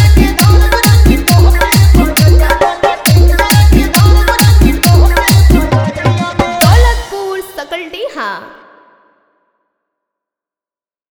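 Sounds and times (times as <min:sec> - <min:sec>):
old Bhojpuri DJ remix song: 0:00.0 - 0:08.8.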